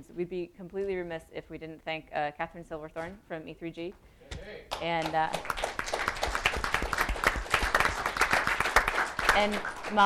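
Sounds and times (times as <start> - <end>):
speech: 0.0 - 5.8, 9.4 - 10.0
audience applause: 5.3 - 10.0.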